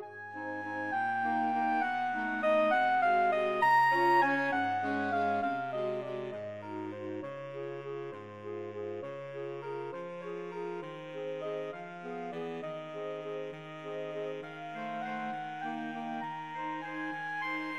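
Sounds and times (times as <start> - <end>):
saxophone quartet playing a waltz: 0.1 - 17.7.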